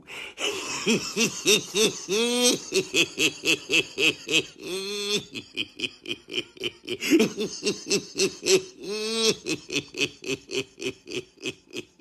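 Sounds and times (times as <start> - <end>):
person laughing maniacally: 0.3 - 12.0.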